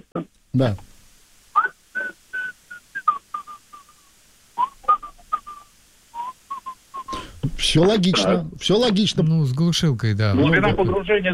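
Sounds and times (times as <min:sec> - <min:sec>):
speech: 0:00.2 - 0:00.9, 0:07.7 - 0:11.3
tune whistled through a respirator: 0:01.6 - 0:07.4.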